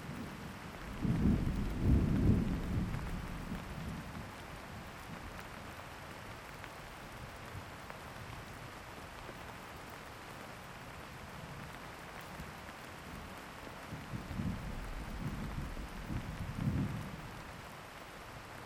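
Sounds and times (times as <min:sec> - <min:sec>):
thunderstorm: 0:00.2 - 0:05.1, 0:13.9 - 0:17.5.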